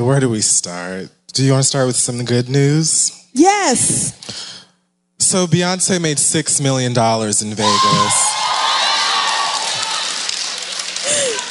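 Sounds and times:
speech: 0:00.0 - 0:04.6, 0:05.2 - 0:08.4
whoops and shouts: 0:07.6 - 0:10.4
large live crowd clapping and cheering: 0:07.6 - 0:11.4.

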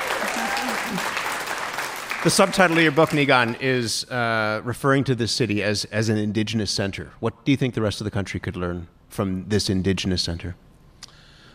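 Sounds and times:
crowd applause: 0:00.0 - 0:03.6
speech: 0:02.2 - 0:10.7.

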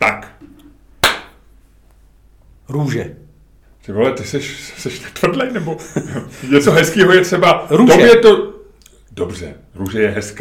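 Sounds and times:
hand clap marking a recording cut: 0:01.0 - 0:01.4
speech: 0:02.7 - 0:03.2, 0:03.8 - 0:08.5, 0:09.2 - 0:10.3
laughter: 0:04.7 - 0:07.0.

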